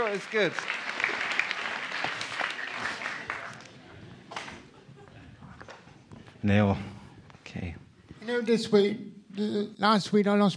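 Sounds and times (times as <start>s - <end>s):
audience clapping: 0.0s - 4.6s
speech: 0.1s - 0.9s, 6.4s - 6.9s, 7.6s - 10.5s.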